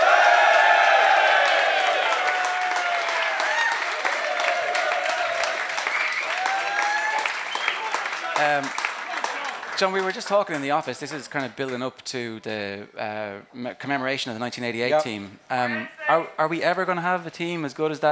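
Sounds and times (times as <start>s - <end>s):
studio audience at a live sports show applauding to welcome a guest: 0.0s - 11.4s
speech: 9.8s - 18.0s.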